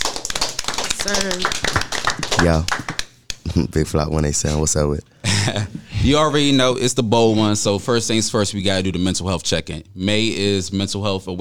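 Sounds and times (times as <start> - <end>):
crowd applauding: 0.0 - 3.2
speech: 1.0 - 2.8, 3.4 - 11.3.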